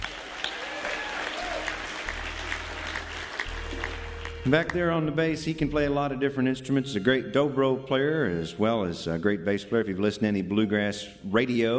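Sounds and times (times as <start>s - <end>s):
audience clapping at a bluegrass show: 0.0s - 5.1s
speech: 4.4s - 11.7s.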